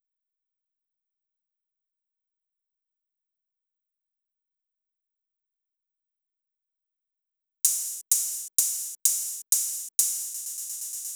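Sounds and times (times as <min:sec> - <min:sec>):
drum loop: 0:07.7 - 0:11.1
open hi-hat: 0:07.7 - 0:11.1.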